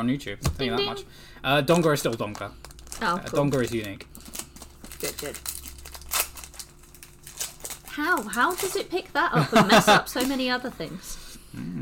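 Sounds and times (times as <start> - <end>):
speech: 0.0 - 4.4, 5.0 - 5.5, 8.0 - 11.7
foil trading card pack being torn open: 1.7 - 9.2, 9.9 - 10.5
laughter: 9.3 - 10.2
low voice murmurs: 11.5 - 11.7.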